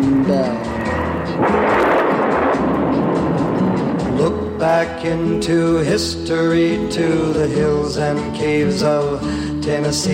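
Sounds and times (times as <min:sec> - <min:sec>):
speech: 0:00.3 - 0:00.8, 0:04.2 - 0:10.1
thunder rolling down the valleys: 0:00.6 - 0:05.7.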